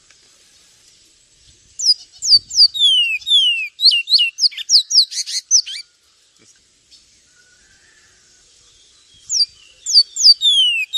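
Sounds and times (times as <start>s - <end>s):
Javan tesia piercing high chirps and falling whistles: 1.8s - 5.8s, 9.2s - 10.9s.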